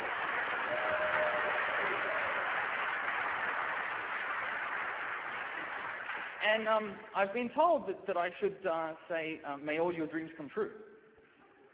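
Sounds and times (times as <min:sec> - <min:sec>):
audience applause: 0:00.0 - 0:06.4
speech: 0:06.5 - 0:10.9.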